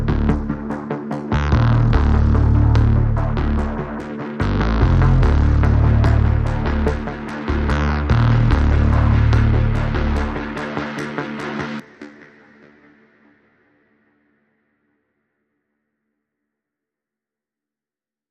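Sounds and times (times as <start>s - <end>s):
reduced music arrangement without drums: 0.0s - 14.0s.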